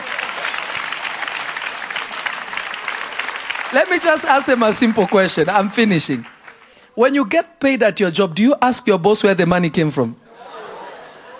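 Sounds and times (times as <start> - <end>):
audience clapping: 0.0 - 7.0
speech: 3.7 - 6.4, 7.0 - 10.2
laughter: 10.3 - 11.3.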